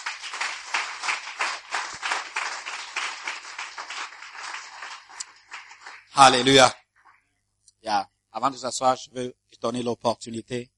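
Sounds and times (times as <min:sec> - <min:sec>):
church congregation applauding: 0:00.0 - 0:06.8
speech: 0:06.2 - 0:06.8, 0:07.8 - 0:10.7.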